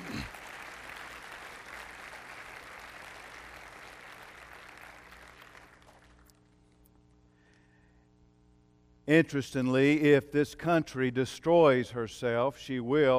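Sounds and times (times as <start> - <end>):
audience applause: 0.0 - 6.3
speech: 9.1 - 13.1.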